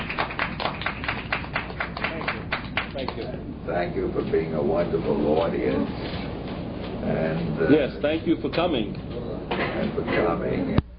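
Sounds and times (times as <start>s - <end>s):
audience clapping for a speaker: 0.0s - 3.4s
speech: 3.2s - 6.2s, 7.0s - 10.8s.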